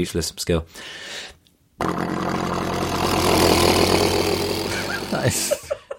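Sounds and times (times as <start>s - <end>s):
voice imitating a helicopter: 1.9s - 5.6s
laughter: 4.7s - 5.9s.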